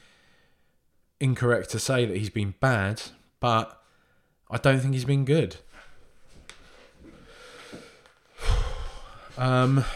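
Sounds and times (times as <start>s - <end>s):
speaker breathing deeply: 0.0s - 0.8s, 3.8s - 4.4s, 6.6s - 9.9s
speech: 1.2s - 3.8s, 4.5s - 5.8s, 9.4s - 9.9s.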